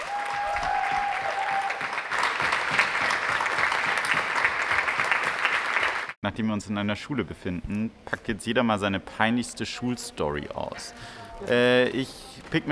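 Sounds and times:
audience applause: 0.0 - 6.2
speech: 6.3 - 12.7.

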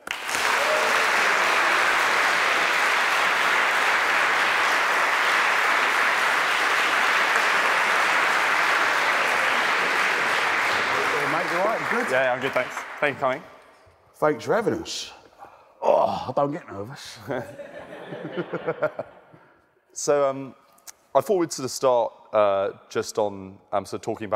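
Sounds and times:
student audience applause welcoming a guest: 0.0 - 13.5
speech: 12.0 - 13.6, 14.2 - 15.2, 16.1 - 19.2, 19.9 - 20.6, 21.2 - 24.3
laughter: 17.3 - 19.5.

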